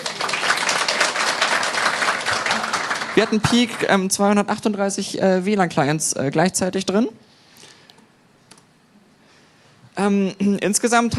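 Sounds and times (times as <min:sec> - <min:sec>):
audience applause: 0:00.0 - 0:04.0
speech: 0:03.2 - 0:07.3, 0:10.0 - 0:11.1.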